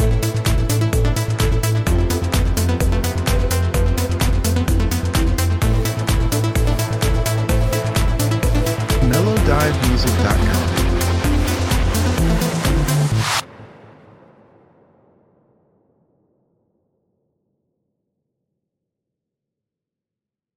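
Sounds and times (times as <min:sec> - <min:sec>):
modern synthwave music: 0:00.0 - 0:13.5.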